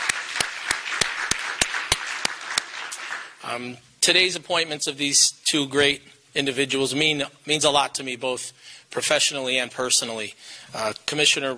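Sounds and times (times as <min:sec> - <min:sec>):
round of applause: 0:00.0 - 0:03.5
speech: 0:03.4 - 0:11.5.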